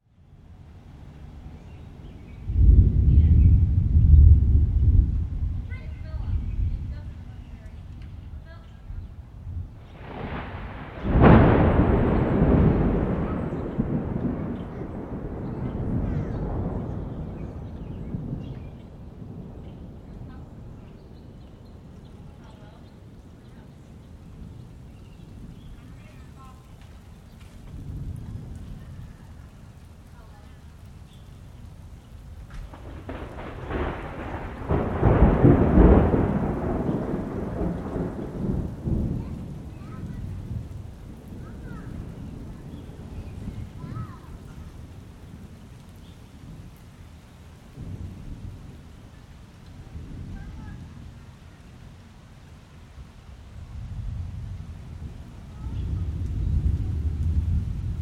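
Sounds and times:
rain approaching in neighborhood: 0.0s - 58.0s
thunderstorm in neighborhood: 2.3s - 7.9s, 9.2s - 20.8s, 27.0s - 29.9s, 31.8s - 46.9s, 47.6s - 51.3s, 53.6s - 58.0s.

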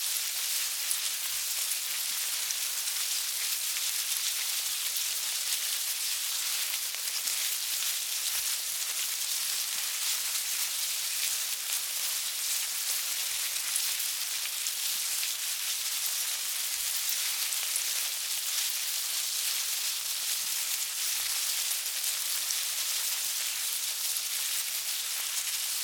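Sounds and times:
bugs crawling in a hive: 0.0s - 25.8s.

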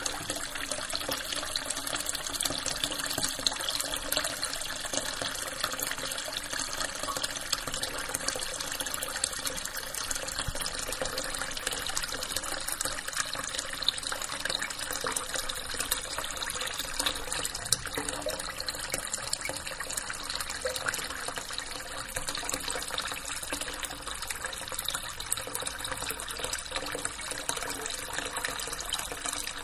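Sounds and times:
bathroom sink filling with water slowly: 0.0s - 29.6s.

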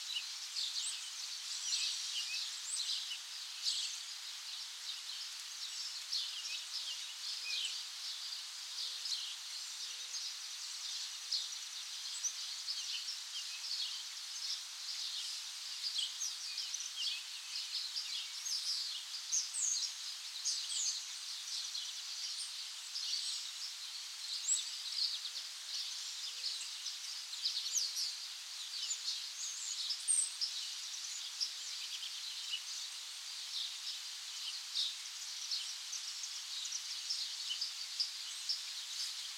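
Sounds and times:
forest birds active: 0.0s - 39.3s.

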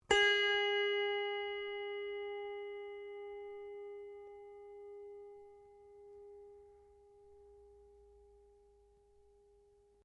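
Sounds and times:
very old wooden zither or autoharp pluck: 0.1s - 7.4s.

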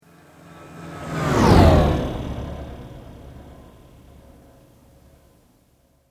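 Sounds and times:
slow mechanical sweep: 0.0s - 5.8s.

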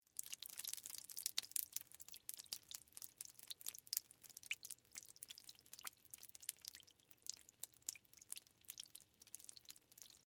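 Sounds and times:
water dripping: 0.0s - 10.2s.

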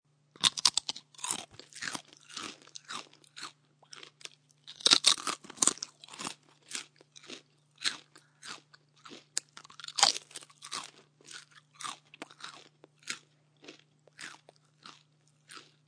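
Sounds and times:
crunching on celery: 0.4s - 15.8s.

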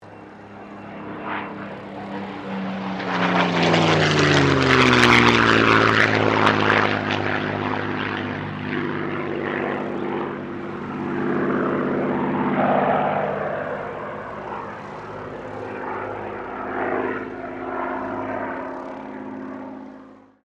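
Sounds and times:
Supermarine Spitfire Mk XVI aircraft passing: 0.0s - 20.4s.

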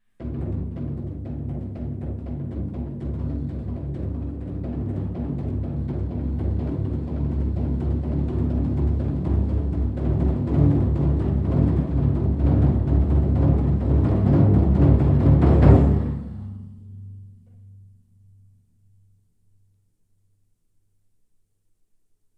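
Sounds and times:
long drum roll without snare: 0.2s - 17.2s.

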